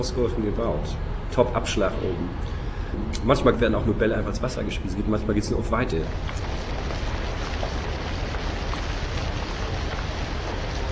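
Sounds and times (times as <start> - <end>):
speech: 0.0 - 6.7
rain falling in Hamburg: 5.8 - 10.8.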